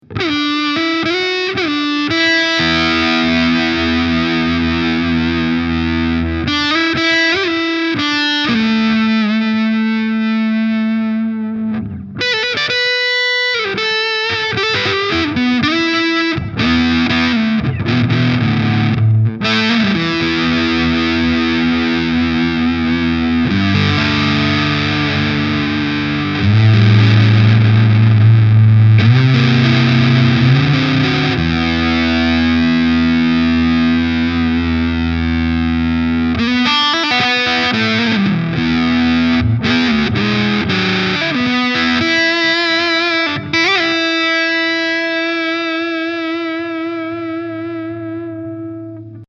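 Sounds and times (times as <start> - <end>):
Big Muff sustain tone: 0.0 - 49.2.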